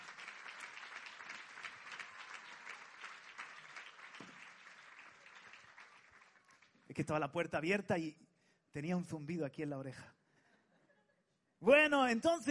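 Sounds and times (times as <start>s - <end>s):
crowd applauding in a large room: 0.0s - 7.1s
speech: 7.0s - 10.2s, 11.6s - 12.4s.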